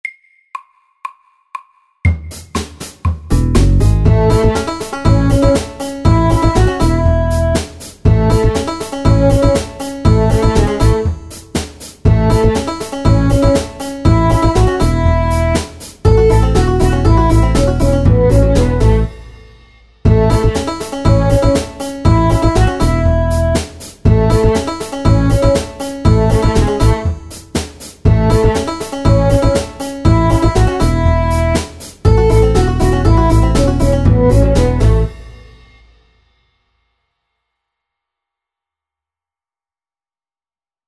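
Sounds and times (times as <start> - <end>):
bluegrass music: 3.3 - 11.4, 12.1 - 19.2, 20.1 - 27.4, 28.1 - 35.2.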